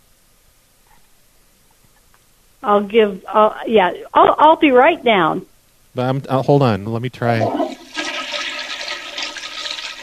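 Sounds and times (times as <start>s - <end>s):
speech: 2.6s - 7.6s
toilet flushing: 7.2s - 10.0s.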